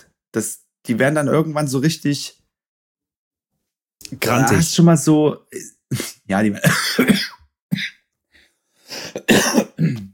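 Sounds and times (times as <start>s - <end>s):
speech: 0.0s - 2.4s, 4.0s - 7.9s
man clearing throat: 5.9s - 8.0s, 9.1s - 10.1s
man's morning smoker's cough: 5.9s - 8.0s, 8.9s - 10.1s.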